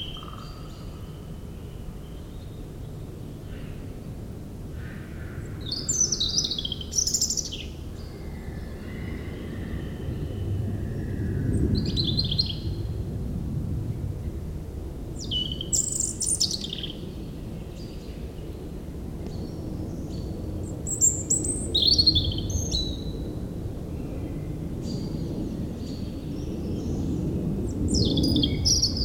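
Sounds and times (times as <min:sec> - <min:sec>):
European robin singing: 0:00.0 - 0:02.6, 0:05.6 - 0:08.2, 0:15.2 - 0:18.5, 0:20.9 - 0:23.1
aircraft roar: 0:00.0 - 0:29.0.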